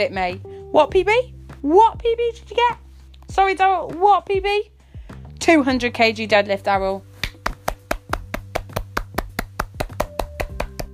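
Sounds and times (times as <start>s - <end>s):
speech: 0.0s - 4.7s, 5.4s - 7.1s
single pair of hands clapping: 7.2s - 10.9s.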